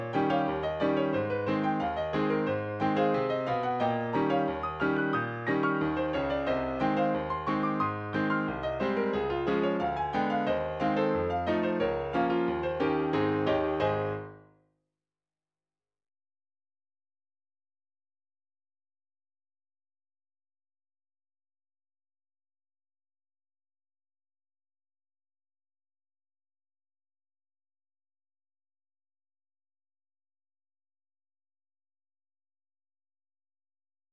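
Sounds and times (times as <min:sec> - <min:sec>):
piano: 0:00.0 - 0:14.6.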